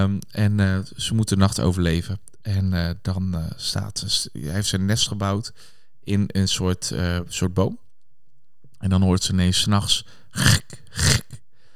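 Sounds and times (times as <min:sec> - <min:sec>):
speech: 0:00.0 - 0:07.8, 0:08.8 - 0:11.2
voice imitating a lion's growl: 0:10.4 - 0:11.4.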